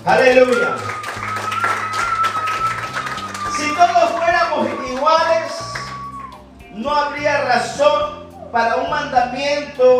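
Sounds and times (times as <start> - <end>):
crowd clapping: 0.0 - 6.5
speech: 0.1 - 1.0, 6.8 - 9.9
sustained keyboard or organ chords: 0.9 - 9.9.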